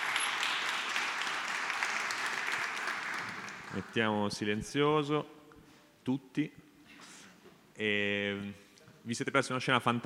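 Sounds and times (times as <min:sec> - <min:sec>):
audience applause: 0:00.0 - 0:03.9
speech: 0:03.7 - 0:05.4, 0:06.0 - 0:06.7, 0:07.8 - 0:10.0.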